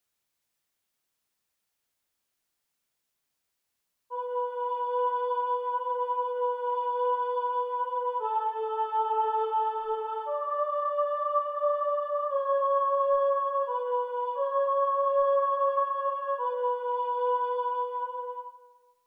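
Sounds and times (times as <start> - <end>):
soprano singing alone: 4.1 - 18.6.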